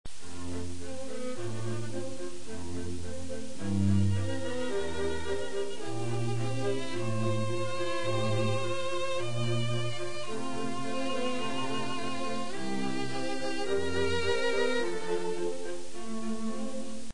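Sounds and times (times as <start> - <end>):
quartet playing: 0.2 - 17.1.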